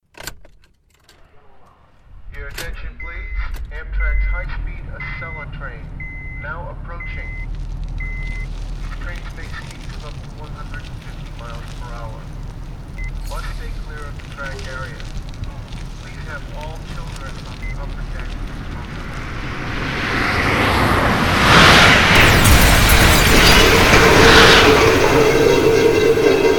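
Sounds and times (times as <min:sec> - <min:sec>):
Honda car: 0:02.4 - 0:26.5
Acela train: 0:19.9 - 0:26.5.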